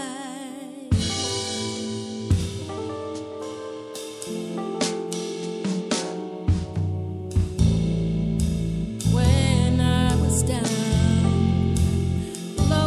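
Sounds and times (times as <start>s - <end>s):
chillout funk fusion music: 0.9s - 12.8s.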